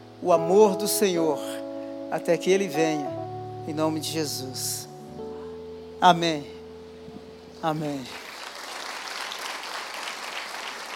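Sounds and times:
speech: 0:00.2 - 0:04.9, 0:06.0 - 0:06.6, 0:07.6 - 0:08.3
audience applause: 0:08.1 - 0:10.9.

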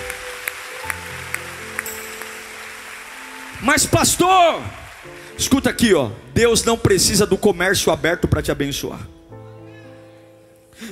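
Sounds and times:
audience applause: 0:00.0 - 0:05.7
speech: 0:03.6 - 0:09.2.

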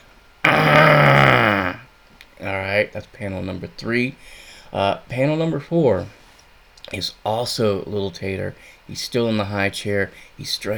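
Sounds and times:
vocal imitation of a straining grunt: 0:00.4 - 0:01.8
speech: 0:02.8 - 0:06.2, 0:06.9 - 0:10.7.

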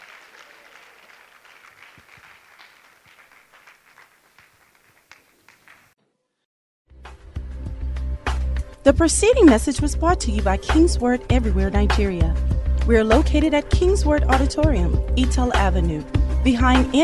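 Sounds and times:
church congregation at a women's conference applauding: 0:00.0 - 0:06.0
speech: 0:08.9 - 0:17.0.

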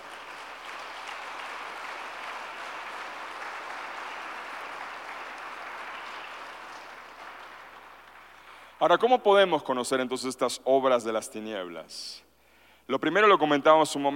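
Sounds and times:
audience applause: 0:00.0 - 0:08.8
speech: 0:08.8 - 0:12.3, 0:12.9 - 0:14.1.

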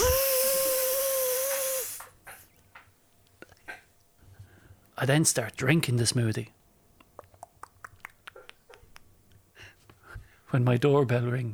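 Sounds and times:
Nutribullet blender motor whirring: 0:00.0 - 0:02.0
speech: 0:05.0 - 0:06.6, 0:10.6 - 0:11.5.

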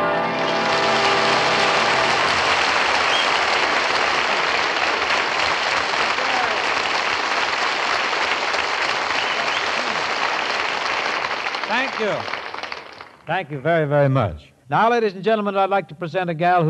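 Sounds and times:
audience applause after a song: 0:00.1 - 0:13.2
speech: 0:13.3 - 0:16.6.

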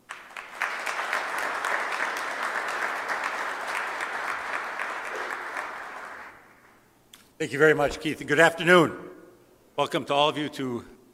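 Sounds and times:
audience applause in the ornate City Hall chambers: 0:00.0 - 0:06.7
speech: 0:07.4 - 0:09.1, 0:09.8 - 0:10.9.

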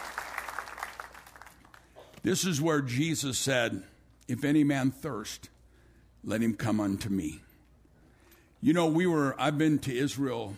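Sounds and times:
audience applause: 0:00.0 - 0:01.8
speech: 0:02.2 - 0:05.6, 0:06.2 - 0:07.5, 0:08.6 - 0:10.5.

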